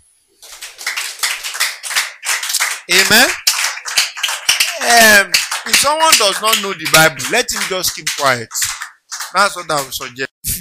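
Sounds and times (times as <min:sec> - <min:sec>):
audience clapping: 0:00.4 - 0:10.3
speech: 0:02.9 - 0:03.4, 0:04.8 - 0:08.7, 0:09.3 - 0:10.5.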